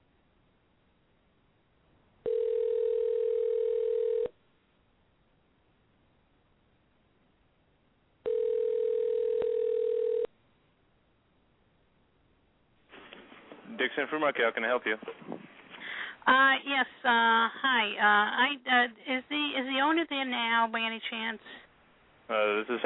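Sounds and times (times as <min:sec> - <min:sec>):
telephone line ringing: 0:02.2 - 0:04.4, 0:08.2 - 0:10.3
speech: 0:13.8 - 0:15.4, 0:16.2 - 0:21.6, 0:22.3 - 0:22.8.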